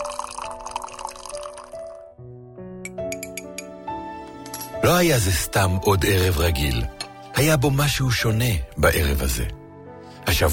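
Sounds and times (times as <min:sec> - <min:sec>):
coffee pouring into a cup: 0:00.0 - 0:02.0
bright ringing clinks: 0:04.4 - 0:04.8
speech: 0:04.8 - 0:09.6, 0:10.3 - 0:10.5.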